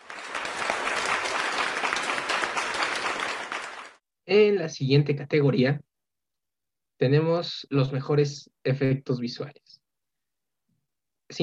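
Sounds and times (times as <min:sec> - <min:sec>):
applause: 0:00.0 - 0:04.0
speech: 0:04.3 - 0:05.9, 0:07.0 - 0:09.7.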